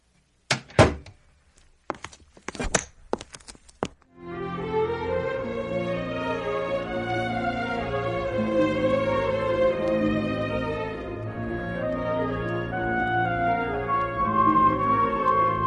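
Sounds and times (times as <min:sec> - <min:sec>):
door opening and closing: 0:00.5 - 0:01.2
sustained tone: 0:04.4 - 0:15.6.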